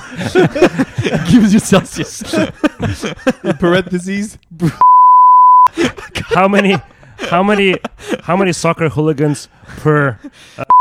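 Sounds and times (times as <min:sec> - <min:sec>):
laughter: 0:00.0 - 0:04.8, 0:05.7 - 0:10.7
speech: 0:00.1 - 0:05.0, 0:05.7 - 0:10.7
censor beeping: 0:04.8 - 0:05.7.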